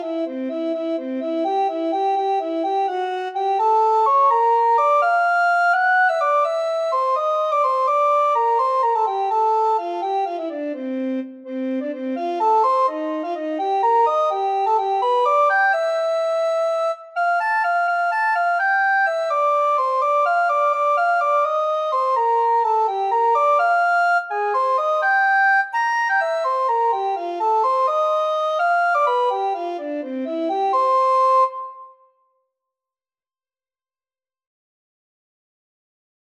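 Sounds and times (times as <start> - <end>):
descant recorder playing: 0.0 - 32.1.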